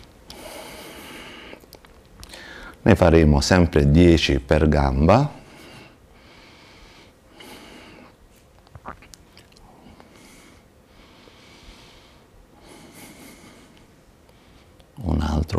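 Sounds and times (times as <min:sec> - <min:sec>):
person breathing in and out during a leg exercise with a ball: 0:00.3 - 0:02.8, 0:05.4 - 0:08.2, 0:09.6 - 0:14.8
speech: 0:02.8 - 0:05.4.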